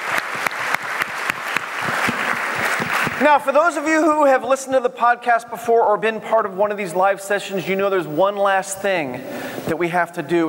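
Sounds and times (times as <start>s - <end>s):
round of applause: 0.0s - 3.2s
speech: 3.2s - 10.4s.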